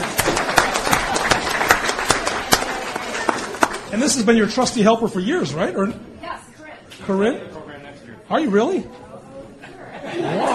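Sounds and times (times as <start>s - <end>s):
round of applause: 0.0s - 3.9s
speech: 3.9s - 6.1s, 7.1s - 7.6s, 8.3s - 9.0s
laughter: 9.5s - 10.5s.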